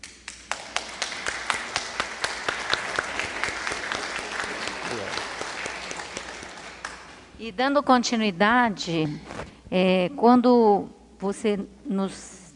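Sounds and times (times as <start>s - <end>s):
applause in a council chamber: 0.3s - 7.4s
speech: 7.4s - 12.4s.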